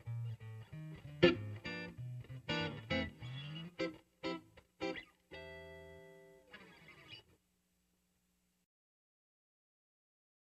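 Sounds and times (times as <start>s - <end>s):
Cajun jazz on electric guitar: 0.0s - 7.3s.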